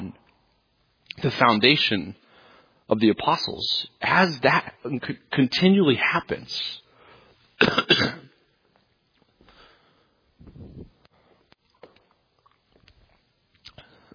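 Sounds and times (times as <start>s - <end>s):
speech: 1.2s - 2.2s, 2.9s - 6.8s, 7.6s - 8.3s
man clearing his throat: 7.6s - 8.4s.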